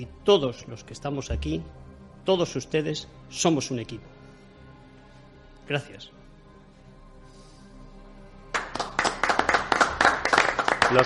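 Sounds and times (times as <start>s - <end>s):
speech: 0.0s - 4.2s, 5.7s - 6.2s
applause at a press conference: 8.5s - 11.0s.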